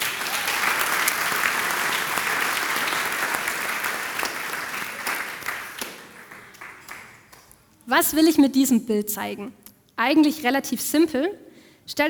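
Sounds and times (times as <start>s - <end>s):
audience applause: 0.0s - 7.4s
speech: 7.9s - 12.0s.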